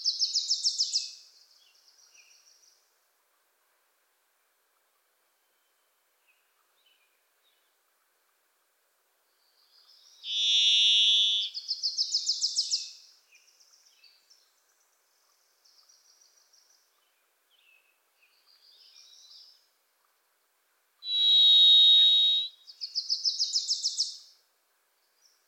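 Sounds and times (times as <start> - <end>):
varied thrush buzzy whistle: 10.3 - 11.5, 21.1 - 22.5.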